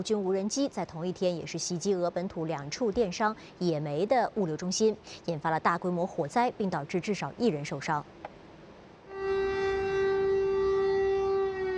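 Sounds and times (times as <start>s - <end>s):
speech: 0.0s - 8.3s
air raid siren in Kyiv: 9.1s - 11.7s.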